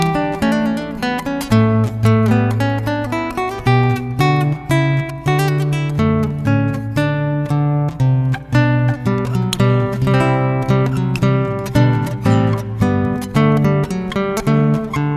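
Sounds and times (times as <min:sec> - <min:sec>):
guitar minuet: 0:00.0 - 0:15.1.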